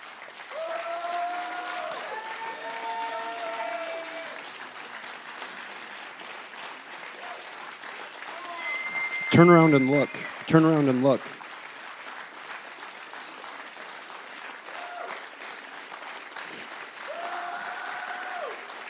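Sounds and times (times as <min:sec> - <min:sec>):
audience applause: 0:00.0 - 0:18.8
cheers and whoops: 0:00.5 - 0:04.6, 0:08.3 - 0:10.5, 0:14.7 - 0:15.2, 0:17.0 - 0:18.8
speech: 0:09.3 - 0:11.4.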